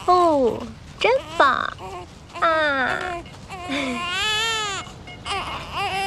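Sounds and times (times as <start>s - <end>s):
speech: 0.1s - 4.1s
infant crying in high-pitched wails: 1.2s - 6.0s.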